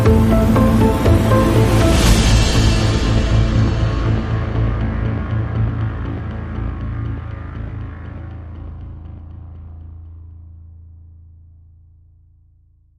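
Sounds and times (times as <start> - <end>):
modern cinematic music: 0.0 - 9.6.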